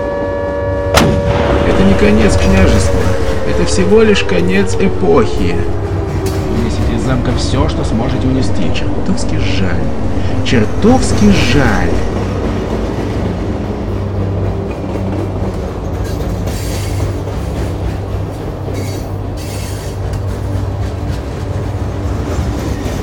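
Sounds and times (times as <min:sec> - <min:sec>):
train running through Piskaryovka rumbling along rails: 0:00.0 - 0:23.0
speech: 0:01.8 - 0:05.9, 0:07.0 - 0:12.3
hissing rattle from train wheels and cars: 0:16.0 - 0:18.0, 0:18.7 - 0:20.6.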